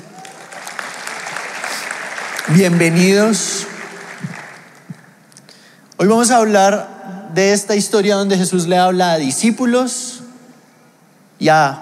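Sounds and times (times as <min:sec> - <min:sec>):
audience applause: 0:00.0 - 0:05.2
speech: 0:02.5 - 0:03.7, 0:06.0 - 0:10.1, 0:11.4 - 0:11.8.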